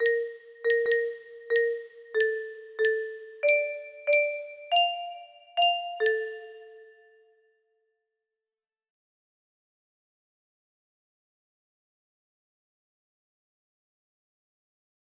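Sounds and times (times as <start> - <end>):
music box melody: 0.0 - 7.3.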